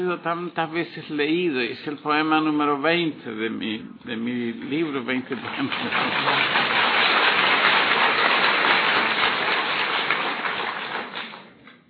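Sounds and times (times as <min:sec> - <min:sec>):
speech: 0:00.0 - 0:06.9
audience applause: 0:05.3 - 0:11.6.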